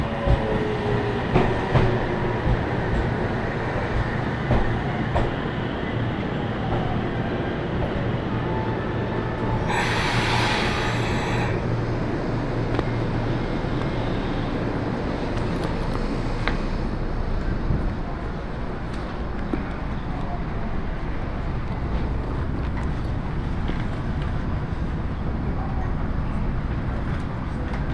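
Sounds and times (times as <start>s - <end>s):
Iida Line 313 series two-car train rolling rumble: 0.0s - 27.9s
bright hiss of air bursting: 9.7s - 11.6s.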